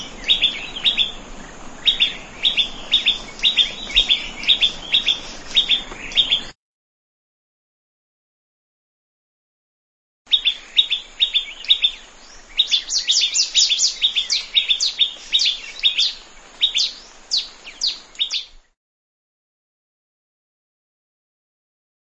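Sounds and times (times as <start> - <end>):
plain prinia chirping in a rice field: 0.0 - 6.6, 10.3 - 18.8.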